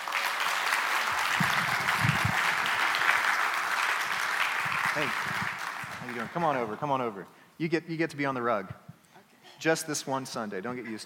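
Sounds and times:
audience applause welcoming a guest at a Sunday church gathering: 0.0s - 6.8s
speech: 5.0s - 5.4s, 6.1s - 8.8s, 9.6s - 11.0s.

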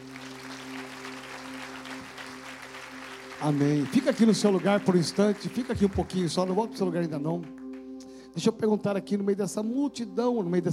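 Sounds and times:
audience applauding: 0.0s - 7.8s
speech: 3.4s - 7.6s, 8.4s - 10.7s.

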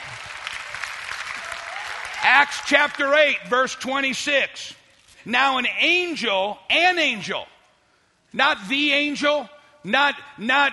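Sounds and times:
audience clapping: 0.0s - 3.3s
speech: 2.2s - 7.5s, 8.3s - 10.7s.

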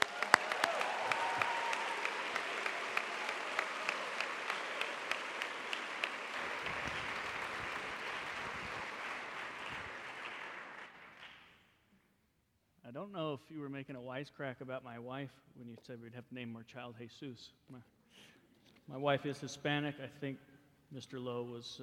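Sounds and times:
audience applause welcoming a reverend as a speaker: 0.0s - 11.4s
speech: 13.0s - 18.3s, 18.9s - 21.8s.

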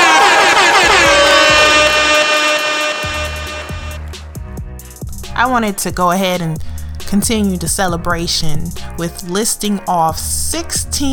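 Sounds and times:
air horn sound effect: 0.0s - 4.4s
speech: 5.4s - 11.1s.

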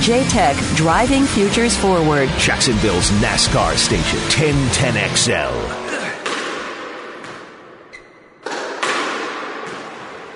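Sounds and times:
speech: 0.0s - 5.9s
squash ball struck during a squash game: 6.2s - 7.8s, 8.4s - 10.3s.

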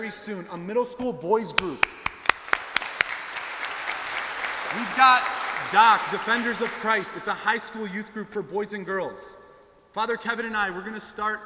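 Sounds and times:
speech: 0.0s - 2.2s, 4.7s - 9.4s, 10.0s - 11.4s
audience clapping: 1.6s - 7.8s.

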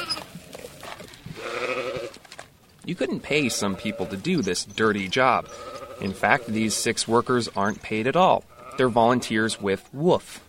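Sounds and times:
rustling and shuffling: 0.0s - 8.4s
sheep bleating: 1.3s - 2.2s, 3.2s - 4.5s, 5.3s - 7.1s, 8.4s - 9.8s
speech: 2.9s - 10.4s.

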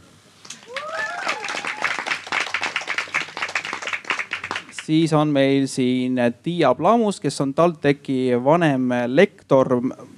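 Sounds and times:
high-pitched cheer: 0.5s - 4.4s
audience applause: 0.5s - 5.1s
speech: 4.9s - 10.1s.

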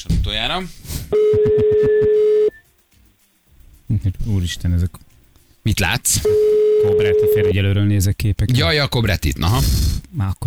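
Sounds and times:
speech: 0.0s - 2.3s, 4.0s - 10.4s
telephone call ringing out: 1.1s - 2.7s, 6.2s - 7.9s.

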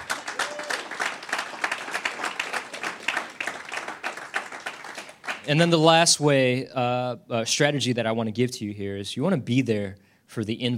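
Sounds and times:
audience clapping hands: 0.0s - 5.9s
speech: 5.5s - 10.7s.

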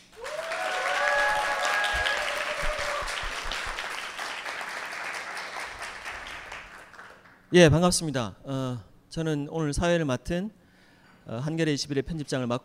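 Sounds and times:
crowd applause: 0.0s - 7.4s
cheers and whistles: 0.1s - 3.7s
speech: 7.5s - 10.6s, 11.2s - 12.6s.

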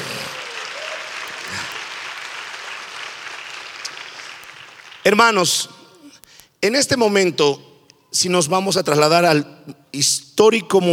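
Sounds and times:
faint cheers and whistles: 0.0s - 1.7s
audience applauding loudly: 0.0s - 5.6s
speech: 5.0s - 5.8s, 6.6s - 10.9s.

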